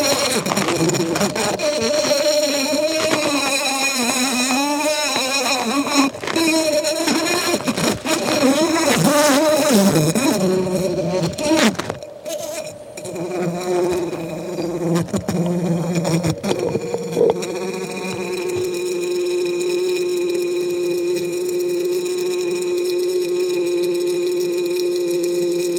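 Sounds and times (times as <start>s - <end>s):
bumblebee buzzing: 0.0s - 25.7s.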